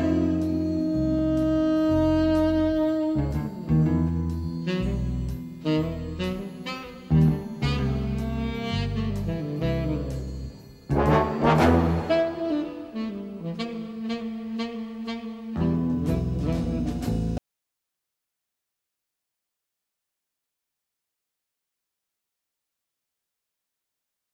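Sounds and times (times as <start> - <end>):
tenor saxophone: 0.0 - 17.4.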